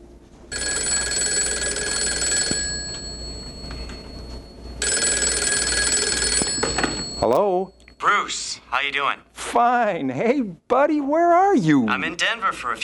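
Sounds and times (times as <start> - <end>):
telephone ringing: 0.5 - 8.2
speech: 7.2 - 12.8.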